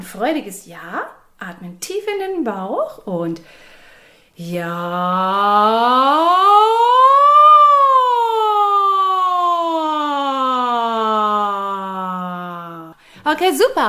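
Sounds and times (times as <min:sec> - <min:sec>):
speech: 0:00.1 - 0:03.7, 0:04.4 - 0:06.5, 0:13.3 - 0:13.8
voice imitating a siren in a vocal exercise: 0:04.5 - 0:13.0.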